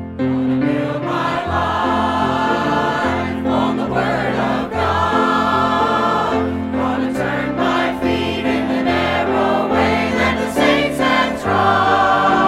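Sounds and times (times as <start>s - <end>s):
choir singing: 0.1s - 12.4s.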